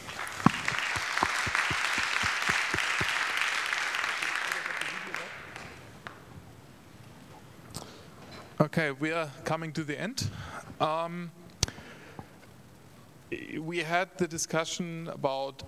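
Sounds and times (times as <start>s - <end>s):
audience applause: 0.0s - 5.9s
speech: 8.8s - 11.4s, 13.6s - 15.6s.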